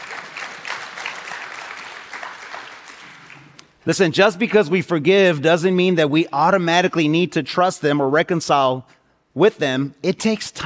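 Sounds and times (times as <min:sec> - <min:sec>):
crowd applauding: 0:00.0 - 0:03.6
speech: 0:03.8 - 0:10.6.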